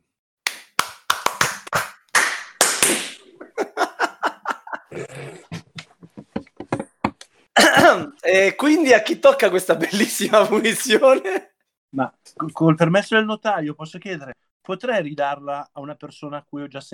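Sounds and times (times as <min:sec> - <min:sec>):
rhythmic hand clapping: 0:00.4 - 0:03.2
laughter: 0:03.4 - 0:04.9, 0:09.7 - 0:11.5
speech: 0:07.9 - 0:16.9.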